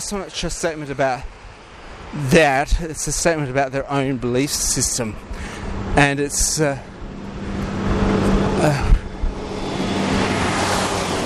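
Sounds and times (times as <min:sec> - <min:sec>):
speech: 0:00.0 - 0:01.4, 0:02.1 - 0:06.9, 0:08.6 - 0:08.9
large truck driving past at night: 0:06.9 - 0:11.2.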